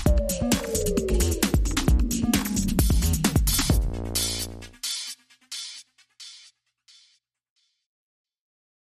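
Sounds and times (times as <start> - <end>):
bonus beats: 0.1 - 4.6.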